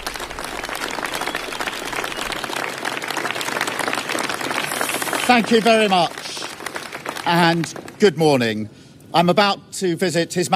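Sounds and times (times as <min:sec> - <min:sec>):
staff applause in Downing Street: 0:00.0 - 0:08.7
speech: 0:05.3 - 0:06.4, 0:07.2 - 0:10.5.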